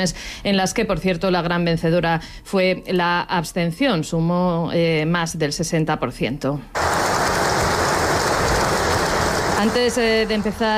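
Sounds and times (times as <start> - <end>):
speech: 0.0 - 6.9, 9.6 - 10.7
crowd applauding the king: 6.8 - 10.4.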